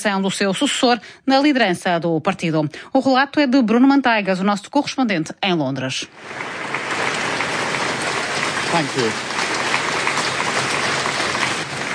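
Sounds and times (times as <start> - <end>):
speech: 0.0 - 6.8, 8.7 - 9.3
crowd of staff applauding: 6.2 - 11.9.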